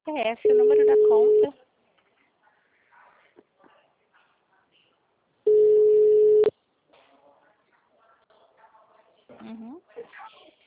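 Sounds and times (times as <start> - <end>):
speech: 0.1 - 1.6
telephone tone after a call drops: 0.5 - 1.5, 5.5 - 6.5.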